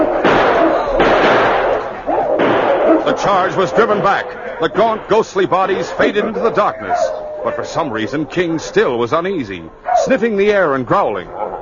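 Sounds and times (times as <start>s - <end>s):
gunshots firing at charging wolves: 0.0s - 5.9s
speech: 3.2s - 11.4s.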